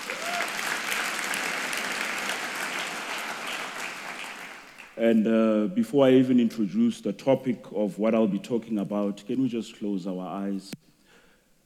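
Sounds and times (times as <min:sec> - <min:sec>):
audience clapping hands: 0:00.0 - 0:05.1
speech: 0:05.0 - 0:10.8.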